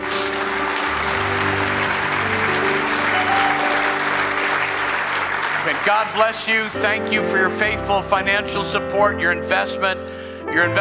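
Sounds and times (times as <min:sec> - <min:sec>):
audience clapping: 0:00.0 - 0:07.7
sustained low keyboard chords: 0:00.0 - 0:10.7
speech: 0:05.9 - 0:10.7.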